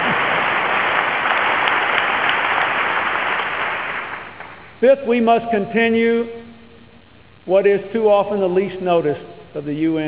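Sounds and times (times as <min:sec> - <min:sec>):
audience applause: 0:00.0 - 0:04.6
speech: 0:04.8 - 0:06.4, 0:07.4 - 0:10.0.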